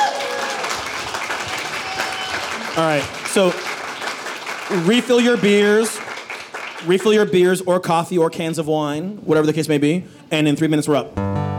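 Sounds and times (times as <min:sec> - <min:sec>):
audience round of applause: 0:00.0 - 0:07.3
speech: 0:02.8 - 0:03.8, 0:04.7 - 0:06.0, 0:06.8 - 0:11.3.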